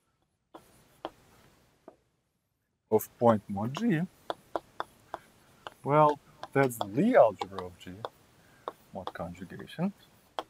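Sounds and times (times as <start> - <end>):
marker or chalk writing on a board during a lecture: 0.5 - 1.4, 3.4 - 10.4
speech: 2.9 - 4.2, 5.8 - 8.2, 9.0 - 10.1.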